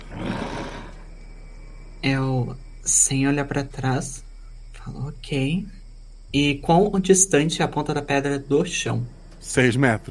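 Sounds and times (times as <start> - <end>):
breathy sniff: 0.0 - 1.0
speech: 2.0 - 10.0.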